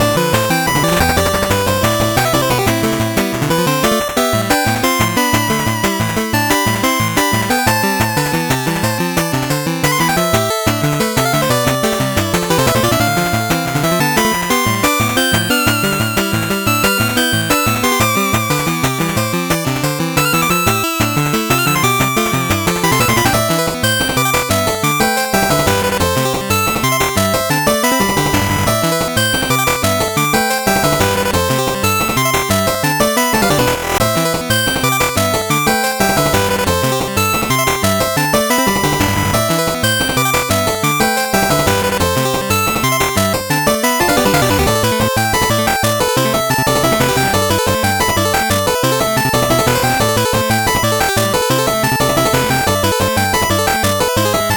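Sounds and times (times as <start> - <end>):
8-bit background music: 0.0 - 54.5.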